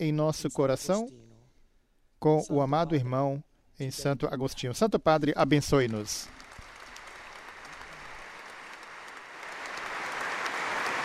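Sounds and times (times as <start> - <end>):
speech: 0.0 - 1.2, 2.2 - 6.4
enthusiastic crowd applause: 5.7 - 11.0.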